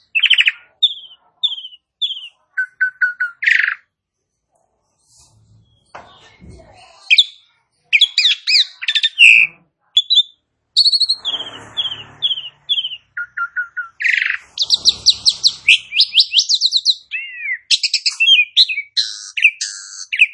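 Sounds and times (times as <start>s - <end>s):
Asian pied starling singing: 0.0s - 3.9s, 5.6s - 20.3s.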